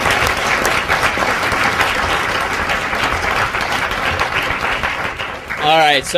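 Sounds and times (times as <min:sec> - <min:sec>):
audience applause: 0:00.0 - 0:06.1.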